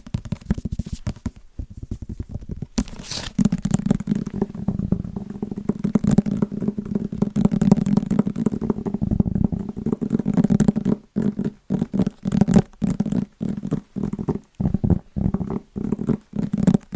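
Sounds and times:
fast tapping on wrapped Christmas presents: 0.0 - 16.9
crisp crinkles: 2.0 - 3.5.

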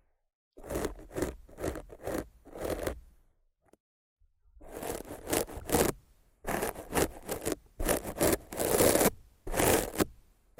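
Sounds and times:
rough scratching and brushing on a microphone: 0.6 - 3.0, 4.6 - 10.1.

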